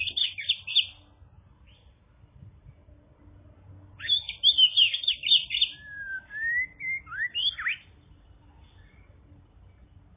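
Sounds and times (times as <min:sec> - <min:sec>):
bird gliding whistle: 0:04.0 - 0:07.9.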